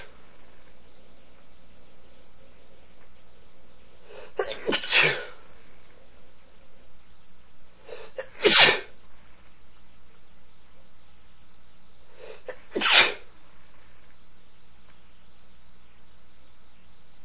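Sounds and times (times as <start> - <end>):
man sneezing: 4.2 - 5.4, 8.0 - 8.9, 12.4 - 13.2.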